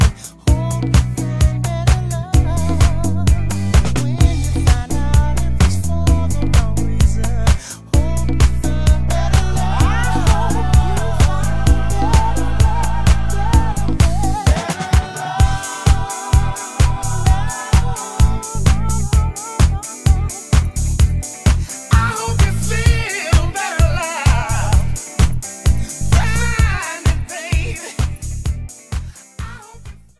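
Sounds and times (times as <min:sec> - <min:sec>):
vocals: 0:00.0 - 0:30.1.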